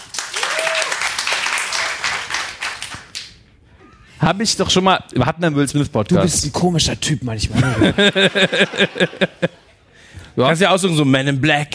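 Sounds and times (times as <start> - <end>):
audience applause during a film discussion: 0.0 - 3.3
speech: 4.2 - 9.6, 10.4 - 11.7
laughter: 7.5 - 9.8.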